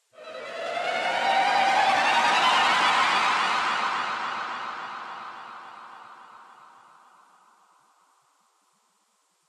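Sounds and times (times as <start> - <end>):
combat string music: 0.2 - 6.0.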